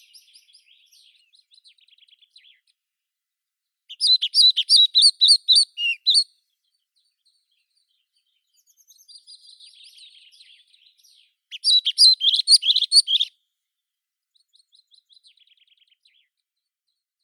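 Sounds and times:
pied flycatcher Ficedula hypoleuca calling: 0:03.9 - 0:06.3, 0:11.5 - 0:13.3.

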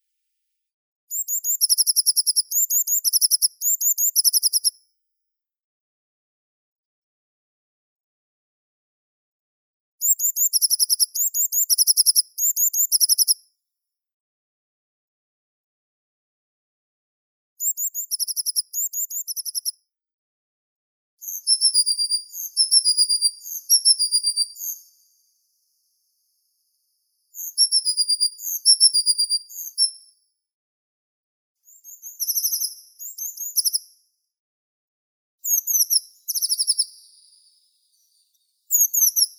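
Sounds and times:
blue tit Cyanistes caeruleus: 0:01.1 - 0:04.7, 0:10.1 - 0:13.4, 0:17.6 - 0:19.8, 0:21.2 - 0:25.8, 0:27.3 - 0:30.0, 0:31.6 - 0:33.9, 0:35.4 - 0:39.3.

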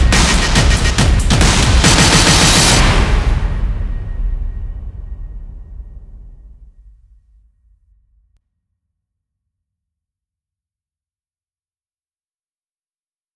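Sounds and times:
percussion: 0:00.0 - 0:05.3.

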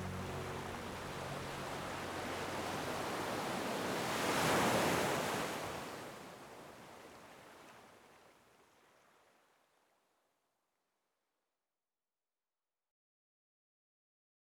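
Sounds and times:
sleep mood piano: 0:00.0 - 0:03.4
ocean waves: 0:00.0 - 0:08.2.

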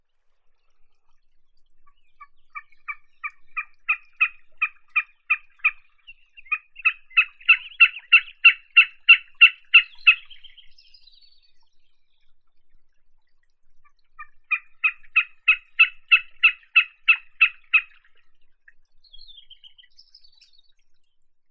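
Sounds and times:
Wilson's snipe Gallinago delicata: 0:03.6 - 0:05.8, 0:06.5 - 0:10.6, 0:14.5 - 0:18.0.

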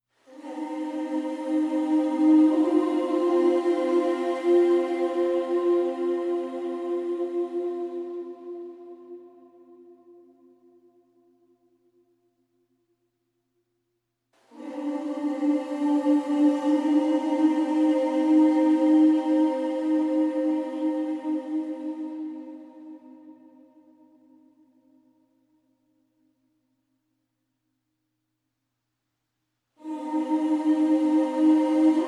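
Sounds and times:
choir singing: 0:00.3 - 0:11.4, 0:14.5 - 0:25.0, 0:29.8 - 0:32.0.

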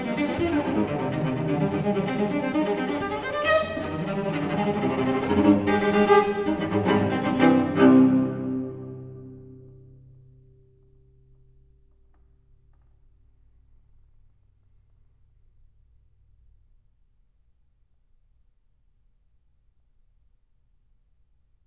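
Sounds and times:
solo cello suite: 0:00.0 - 0:11.0.

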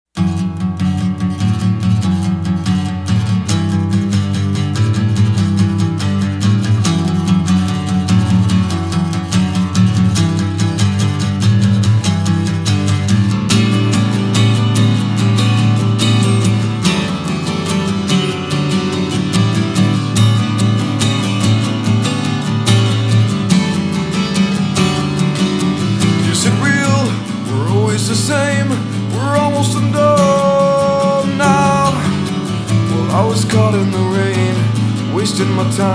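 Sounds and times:
acoustic music: 0:00.2 - 0:35.9.

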